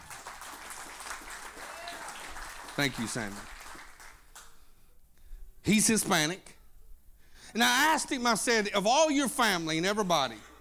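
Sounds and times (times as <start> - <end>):
crowd cheer: 0.0 - 4.4
audience clapping: 0.0 - 4.6
speech: 2.8 - 3.6, 5.6 - 6.6, 7.5 - 10.5.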